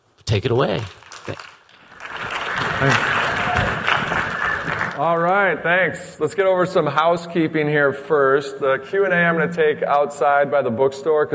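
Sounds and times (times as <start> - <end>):
speech: 0.3 - 1.5, 2.8 - 3.2, 5.0 - 11.3
audience applause: 1.1 - 5.0.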